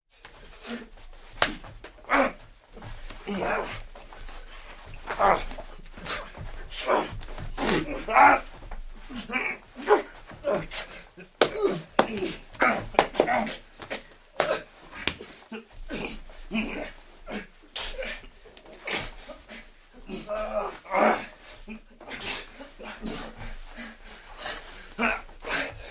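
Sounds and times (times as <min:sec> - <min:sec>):
people fighting: 0:00.2 - 0:25.8
fist punches: 0:01.3 - 0:01.8, 0:11.4 - 0:15.3.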